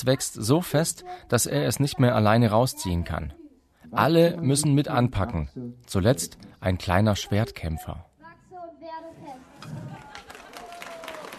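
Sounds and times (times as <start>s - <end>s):
speech: 0.0s - 8.1s
street audience clapping: 9.8s - 11.3s.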